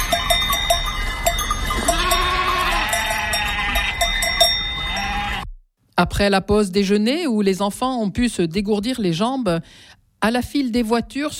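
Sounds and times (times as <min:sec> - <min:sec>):
bells clinking: 0:00.0 - 0:05.4
flock of sheep and ewes bleating: 0:01.7 - 0:05.5
speech: 0:06.0 - 0:11.3.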